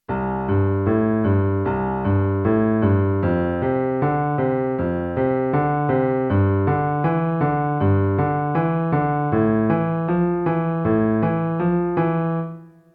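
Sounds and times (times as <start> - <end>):
boogie bass line in C F G Am: 0.1 - 12.4.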